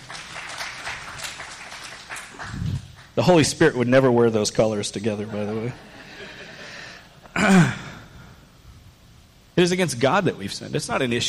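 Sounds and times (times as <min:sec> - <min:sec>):
audience applause: 0:00.0 - 0:03.2
speech: 0:03.2 - 0:06.0, 0:09.6 - 0:11.2.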